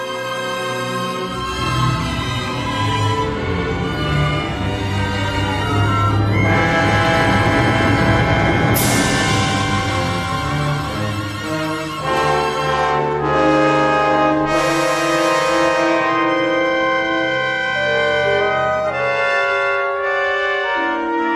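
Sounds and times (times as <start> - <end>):
orchestra playing: 0.0 - 21.3.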